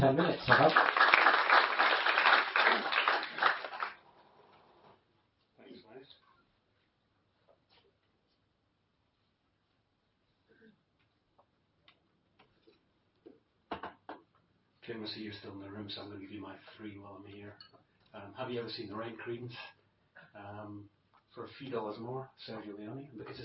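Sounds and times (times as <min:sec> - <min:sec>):
speech: 0:00.0 - 0:01.0, 0:15.0 - 0:19.8, 0:20.4 - 0:23.4
audience applause: 0:00.0 - 0:04.1.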